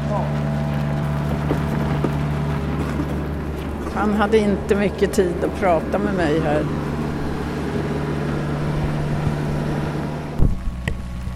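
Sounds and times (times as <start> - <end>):
amphibious boat-launching vehicle on rubber wheels: 0.0 - 11.3
speech: 4.0 - 6.8.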